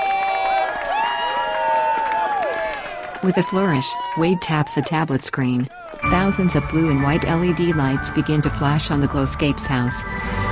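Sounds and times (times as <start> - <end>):
whoops and shouting voices: 0.0 - 5.0
crowd cheering and applauding: 0.0 - 8.5
speech: 3.2 - 10.5.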